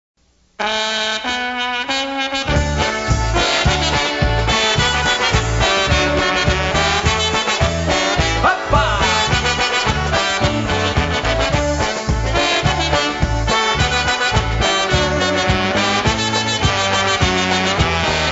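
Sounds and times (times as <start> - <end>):
polka music: 0.6 - 18.3.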